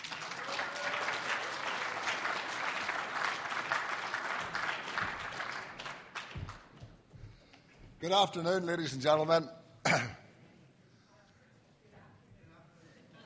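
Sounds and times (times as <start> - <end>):
audience applause welcoming a Conservative speaker at a political gathering: 0.0 - 6.7
speech: 8.0 - 10.2.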